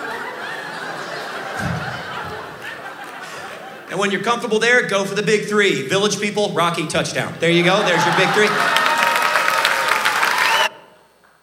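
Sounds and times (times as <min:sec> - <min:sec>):
laughter: 0:00.0 - 0:04.5, 0:07.4 - 0:10.5
church audience clapping hands: 0:01.5 - 0:03.8, 0:07.6 - 0:11.4
speech: 0:03.9 - 0:08.8.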